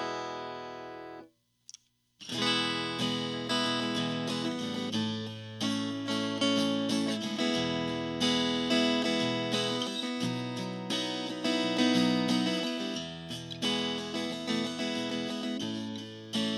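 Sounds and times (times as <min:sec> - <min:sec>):
Taylor T5 Custom koa guitar: 0:00.0 - 0:01.2, 0:02.2 - 0:16.5.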